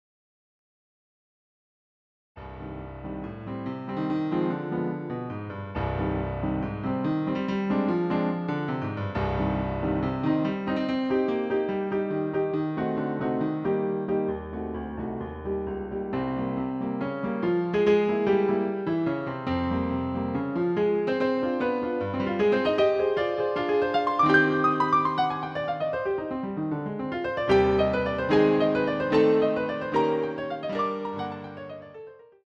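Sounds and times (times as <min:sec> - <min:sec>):
piano sonata: 0:02.4 - 0:32.4.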